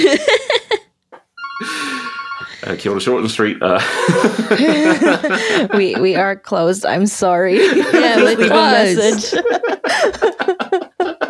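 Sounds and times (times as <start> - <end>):
phone ringing: 1.4 - 2.6
speech: 2.7 - 10.9
laughter: 3.6 - 6.4, 7.5 - 11.2.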